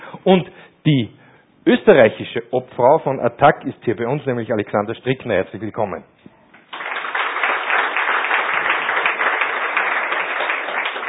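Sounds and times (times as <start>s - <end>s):
speech: 0.2s - 6.1s
audience applause: 6.7s - 11.0s.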